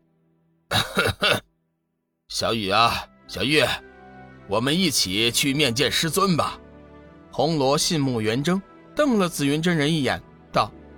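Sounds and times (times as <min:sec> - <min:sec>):
deliberate throat-clearing cough: 0:00.7 - 0:01.5
speech: 0:02.4 - 0:03.9, 0:04.5 - 0:06.6, 0:07.3 - 0:10.8.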